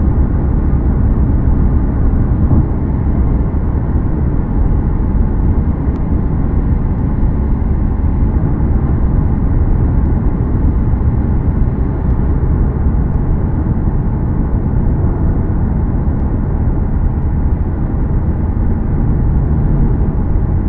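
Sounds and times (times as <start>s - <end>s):
wind noise: 0.0s - 20.6s.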